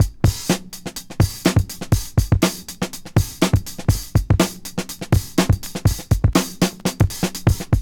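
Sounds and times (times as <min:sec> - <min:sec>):
drum breaks: 0:00.0 - 0:07.8.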